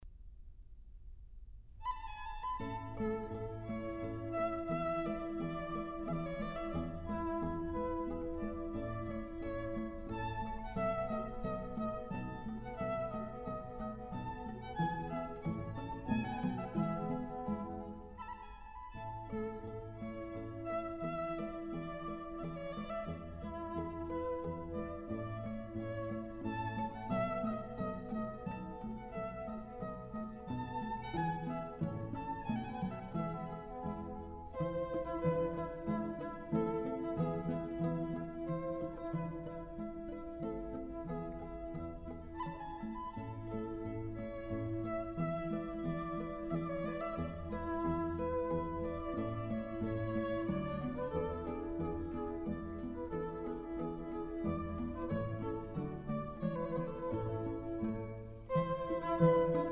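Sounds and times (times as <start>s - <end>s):
quintet in E major playing minuet: 1.8s - 59.7s.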